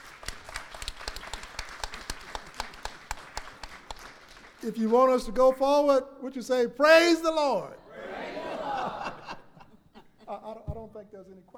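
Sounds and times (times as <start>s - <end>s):
audience clapping hands: 0.0s - 5.7s
speech: 4.6s - 7.8s, 11.0s - 11.5s
laughter: 7.3s - 10.9s.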